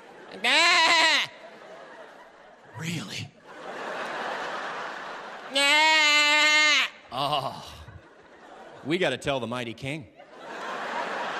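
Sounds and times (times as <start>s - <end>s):
laughter: 0.0s - 9.5s, 10.1s - 11.3s
person imitating sheep bleating: 0.4s - 1.3s, 5.5s - 7.9s
speech: 2.8s - 3.4s, 8.8s - 10.2s.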